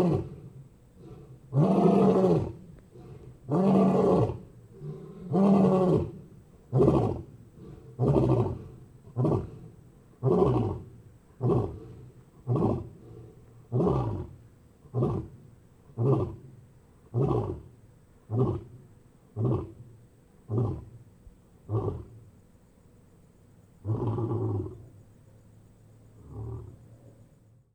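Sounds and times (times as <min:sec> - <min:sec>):
lion roar: 0:00.0 - 0:15.4, 0:16.0 - 0:16.4, 0:17.1 - 0:17.7, 0:18.3 - 0:18.8, 0:19.4 - 0:19.8, 0:20.5 - 0:20.9, 0:21.7 - 0:22.2, 0:23.8 - 0:24.9, 0:26.2 - 0:26.9.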